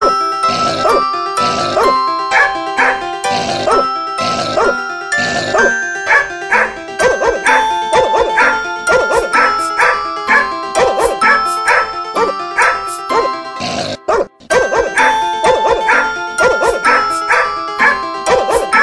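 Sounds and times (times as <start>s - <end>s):
dogs singing remix: 0.0s - 18.8s.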